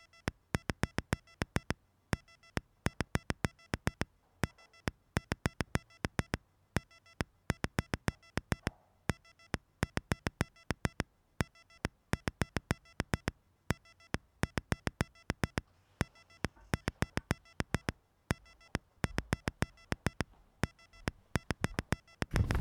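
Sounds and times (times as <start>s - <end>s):
morse code sequencer triggers: 0.0s - 22.5s.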